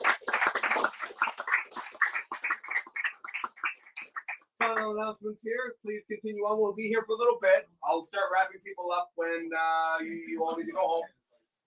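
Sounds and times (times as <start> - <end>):
audience applause: 0.0 - 4.8
speech: 4.8 - 11.2.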